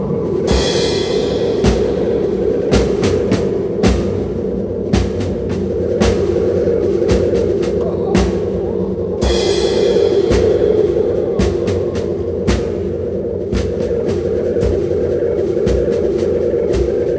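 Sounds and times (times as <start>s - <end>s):
noise improvisation: 0.0s - 17.1s.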